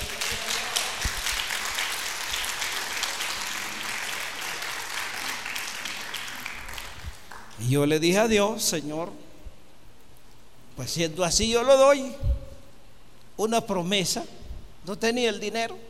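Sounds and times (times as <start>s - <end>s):
large crowd applause: 0.0s - 7.6s
speech: 7.7s - 9.2s, 10.8s - 12.4s, 13.4s - 15.8s.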